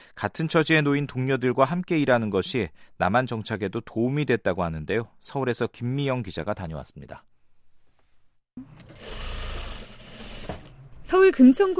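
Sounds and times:
speech: 0.2s - 7.3s, 8.6s - 9.3s, 11.1s - 11.7s
sewing machines running in a garment factory: 8.8s - 10.7s.

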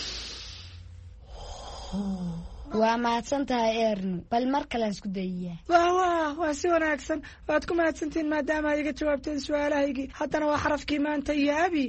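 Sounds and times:
deep breath taken during a calming breathing exercise: 0.0s - 2.8s
speech: 1.9s - 11.8s.

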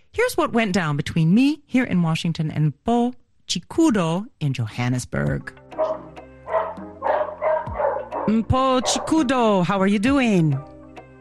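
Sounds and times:
speech: 0.2s - 5.9s, 8.3s - 10.7s
dog barking in short high yappy bursts: 5.8s - 9.3s.

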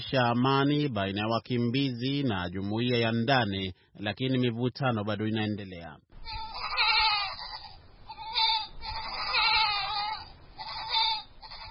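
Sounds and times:
speech: 0.0s - 6.4s
goats bleating in a village near a refugee camp: 6.2s - 11.6s.

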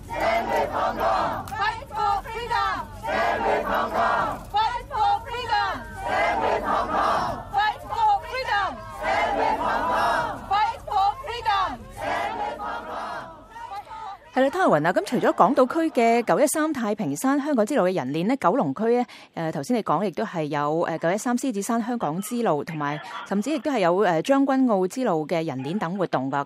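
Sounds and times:
large crowd of protesters chanting slogans: 0.0s - 16.4s
speech: 14.4s - 26.4s.

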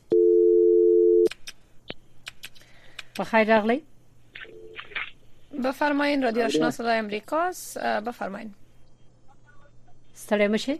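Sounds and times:
telephone line tone on a radio call-in show: 0.1s - 1.3s
speech: 3.2s - 3.9s, 5.6s - 8.6s, 10.2s - 10.7s.

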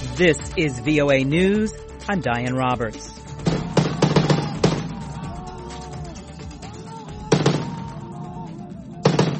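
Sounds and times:
speech: 0.2s - 3.2s
gunfire shooting down a helicopter: 3.4s - 5.0s, 7.3s - 7.9s, 9.0s - 9.3s
voices shouting: 3.4s - 9.3s.

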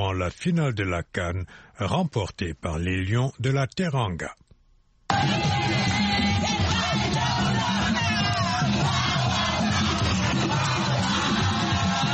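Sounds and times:
speech: 0.0s - 4.4s, 5.2s - 5.6s
crowd cheering after football final victory: 5.1s - 12.1s.

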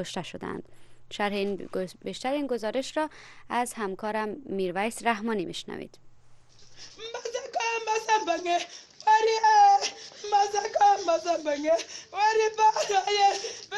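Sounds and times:
speech: 0.0s - 6.1s, 8.2s - 13.7s
62-year-old woman weeping and wailing for her son killed in fighting: 6.8s - 13.7s.

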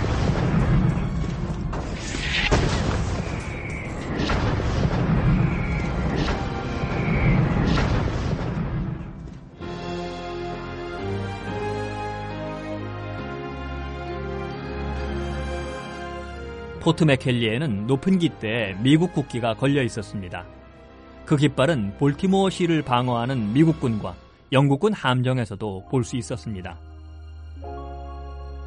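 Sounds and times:
high whistling shells: 0.0s - 9.1s
heavy artillery booms and rumbling blasts: 0.0s - 9.6s
music: 0.0s - 28.6s
speech: 16.9s - 20.6s, 21.3s - 26.9s.

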